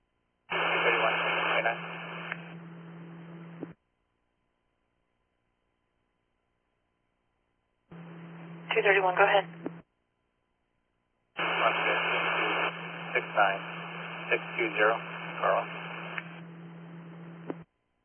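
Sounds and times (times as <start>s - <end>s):
extreme radio static on a dispatch channel: 0.5s - 2.6s, 7.9s - 9.8s, 11.4s - 17.6s
low steady hum: 0.5s - 3.8s, 7.9s - 9.9s, 11.4s - 17.7s
speech: 8.8s - 9.7s, 13.4s - 15.8s.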